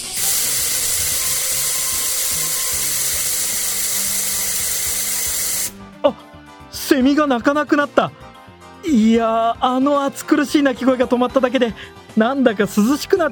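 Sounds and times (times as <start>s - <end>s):
aerosol spray being sprayed at a tree: 0.0s - 5.8s
speech: 6.0s - 8.2s, 8.8s - 13.3s.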